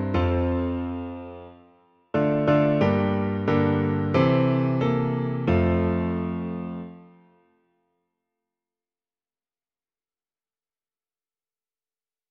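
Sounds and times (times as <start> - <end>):
piano: 0.0 - 7.7.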